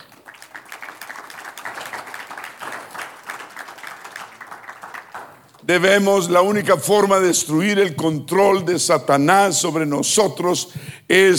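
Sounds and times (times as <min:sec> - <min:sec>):
crowd applause: 0:00.0 - 0:05.7
speech: 0:05.7 - 0:11.3.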